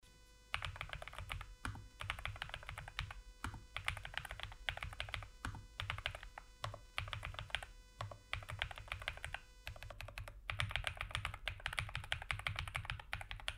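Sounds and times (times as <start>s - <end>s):
NuPhy Air96 V2 keyboard typing: 0.5s - 13.5s.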